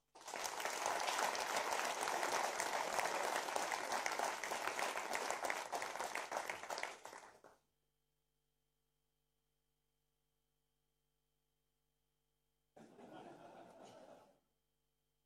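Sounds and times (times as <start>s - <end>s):
loud applause: 0.0s - 7.6s
laughter: 12.8s - 14.4s.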